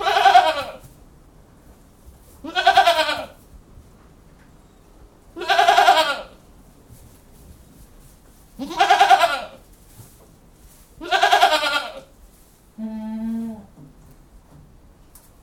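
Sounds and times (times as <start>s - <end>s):
goat bleating: 0.0s - 0.8s, 2.4s - 3.4s, 5.4s - 6.4s, 8.6s - 9.6s, 11.0s - 12.1s, 12.8s - 13.7s.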